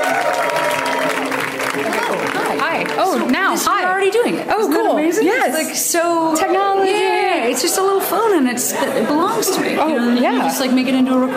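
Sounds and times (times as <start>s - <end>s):
voices cheering and calling out: 0.0s - 3.7s
audience clapping: 0.0s - 4.4s
speech: 2.7s - 11.3s.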